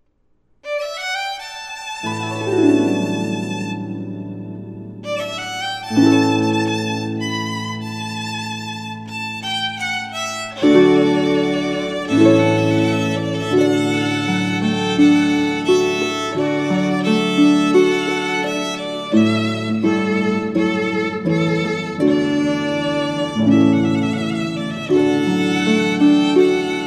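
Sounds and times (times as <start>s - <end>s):
harp: 0.6s - 26.8s.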